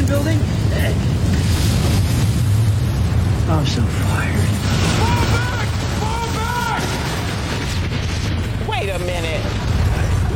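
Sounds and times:
explosion at a feed factory, deep rumbling roar: 0.0 - 10.3
speech: 3.6 - 4.9.

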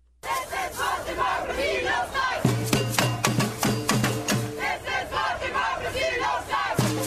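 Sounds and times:
street protest crowd chanting: 0.2 - 7.0
sharp rhythmic bangs: 2.4 - 4.8.

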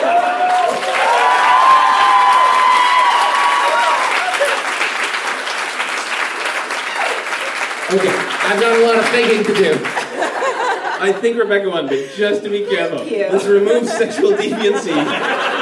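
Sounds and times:
crowd cheers and whoops: 0.0 - 5.0, 6.7 - 7.6
crowd applause: 0.0 - 11.0, 14.5 - 15.6
speech: 7.9 - 10.1, 11.0 - 15.5
laughter: 9.6 - 15.6.

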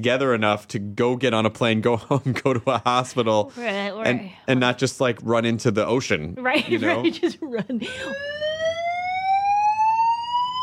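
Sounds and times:
speech: 0.0 - 8.4
electronic alarm tone rising: 7.9 - 10.6.

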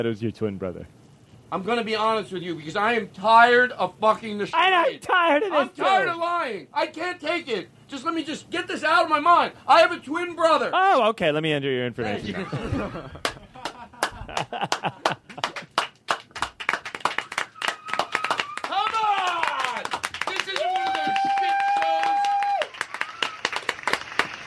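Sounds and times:
speech: 0.0 - 13.3, 14.4 - 15.2
voices and shouts: 4.6 - 11.0, 17.8 - 22.7
laughter: 12.0 - 15.8
crowd clapping rhythmically: 13.2 - 24.4.

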